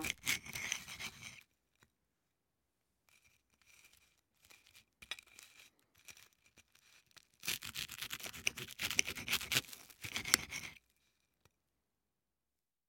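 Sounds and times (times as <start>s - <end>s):
butter spread on toast: 0.0s - 1.6s, 3.0s - 11.4s.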